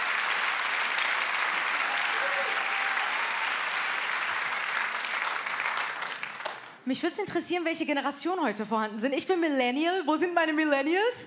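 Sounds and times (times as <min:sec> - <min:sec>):
audience applause: 0:00.0 - 0:06.8
speech: 0:06.9 - 0:11.2.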